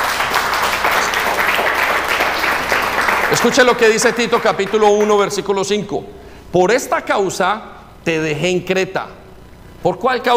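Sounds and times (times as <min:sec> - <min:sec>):
audience applauding: 0:00.0 - 0:05.5
speech: 0:03.4 - 0:09.2, 0:09.8 - 0:10.3.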